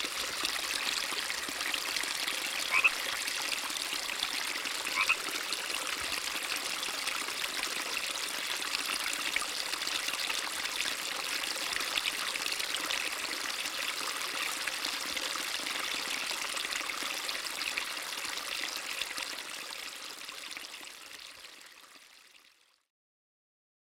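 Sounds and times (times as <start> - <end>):
creek flowing: 0.0 - 22.6
frog calling: 2.6 - 3.0, 4.9 - 5.2.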